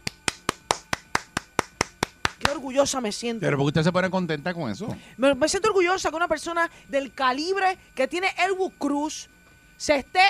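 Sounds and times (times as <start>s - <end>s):
clapping applause: 0.0s - 2.6s
speech: 2.6s - 10.2s.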